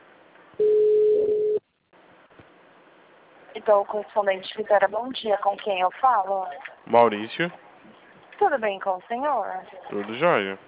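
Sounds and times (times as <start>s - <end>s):
telephone line tone while a call is transferred: 0.6s - 1.6s
speech: 3.6s - 7.6s, 8.4s - 10.6s.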